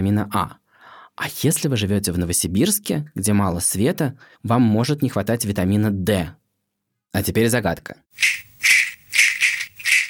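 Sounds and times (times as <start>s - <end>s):
speech: 0.0s - 0.6s, 1.2s - 6.4s, 7.1s - 9.3s
rattle made of giant entada beans shaken: 8.1s - 10.0s.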